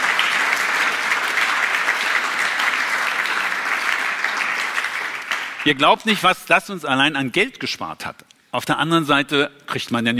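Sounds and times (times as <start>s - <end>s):
thunderous applause from audience: 0.0s - 5.8s
speech: 5.6s - 10.1s.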